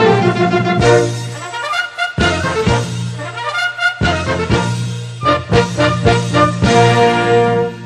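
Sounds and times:
anthem music: 0.0s - 7.8s.

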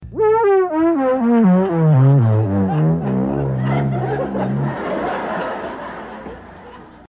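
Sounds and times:
fail sound: 0.2s - 5.0s
laughter: 1.7s - 7.0s.

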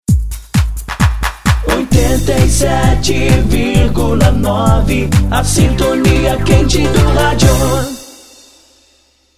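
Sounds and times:
sung jingle: 1.6s - 8.9s.

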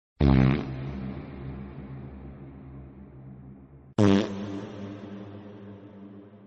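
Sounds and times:
fart: 0.2s - 1.5s, 4.0s - 4.5s.

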